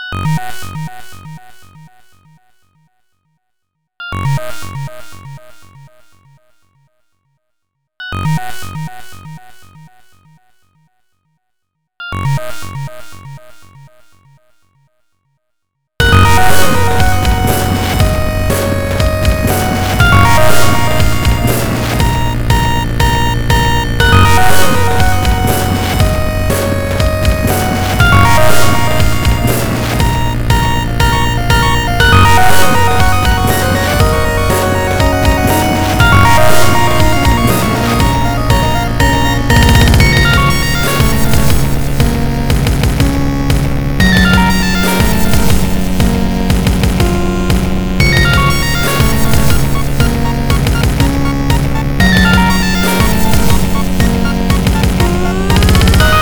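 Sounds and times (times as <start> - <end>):
pxtone chiptune music: 16.0 - 56.1.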